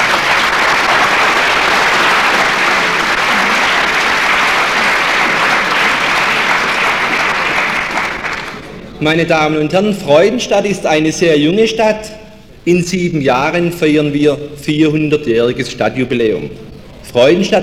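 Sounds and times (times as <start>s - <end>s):
audience applause at a civic gathering in Freudenstadt: 0.0s - 8.7s
speech: 9.0s - 17.6s.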